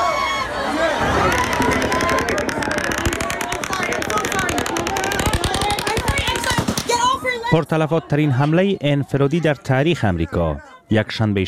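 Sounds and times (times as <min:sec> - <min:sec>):
crowd noise and shouting voices: 0:00.0 - 0:07.4
rapid automatic gunfire: 0:01.0 - 0:07.3
speech: 0:07.5 - 0:11.4.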